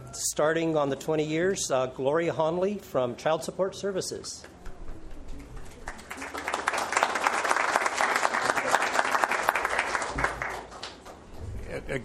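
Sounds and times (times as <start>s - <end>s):
speech: 0.2s - 4.5s
audience applause: 5.3s - 11.2s.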